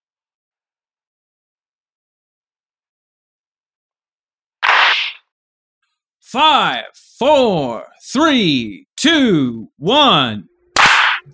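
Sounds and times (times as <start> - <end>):
speech: 6.2 - 10.5
people clapping in unison: 10.8 - 11.2.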